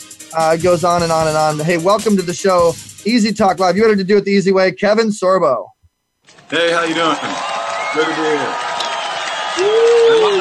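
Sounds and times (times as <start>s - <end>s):
speech: 0.3s - 5.7s, 6.5s - 8.6s
audience applause: 6.3s - 10.3s.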